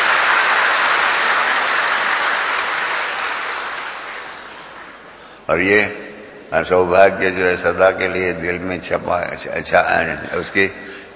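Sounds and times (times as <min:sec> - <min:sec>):
audience clapping: 0:00.0 - 0:05.0
speech: 0:05.5 - 0:11.1.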